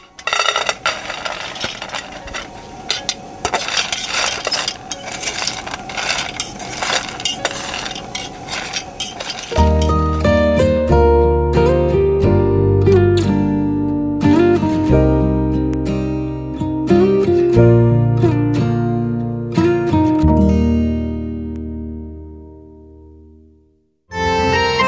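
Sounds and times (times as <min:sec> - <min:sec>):
coffee beans rattling in a pan while roasting: 0:00.0 - 0:10.2
music: 0:09.6 - 0:24.8.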